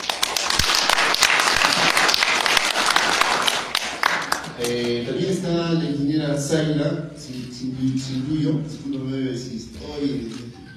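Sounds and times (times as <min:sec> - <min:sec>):
audience applause: 0:00.0 - 0:04.6
speech: 0:04.7 - 0:10.4.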